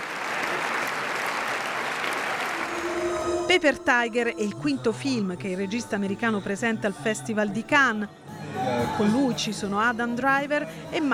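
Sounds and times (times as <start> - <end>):
audience applause in a festival screening hall at the end of a film: 0.0 - 3.4
speech: 3.5 - 8.3, 8.9 - 11.1.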